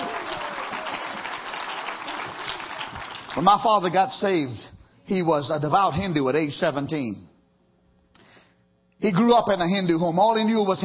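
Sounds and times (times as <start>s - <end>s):
audience clapping: 0.0s - 3.9s
speech: 3.4s - 7.3s, 9.0s - 10.8s.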